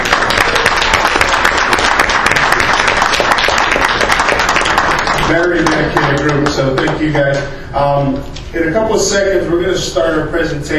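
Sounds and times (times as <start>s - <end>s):
audience applause: 0.0s - 7.1s
speech: 5.3s - 10.7s.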